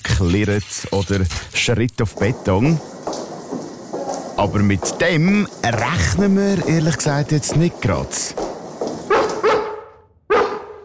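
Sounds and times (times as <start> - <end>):
speech: 0.2 - 2.9, 4.4 - 8.5
dog barking in a prison: 9.1 - 10.8.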